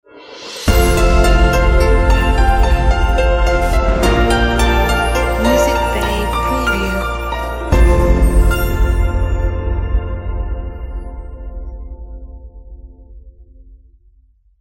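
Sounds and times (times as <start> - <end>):
elegant piano logo sting: 0.7 - 12.0.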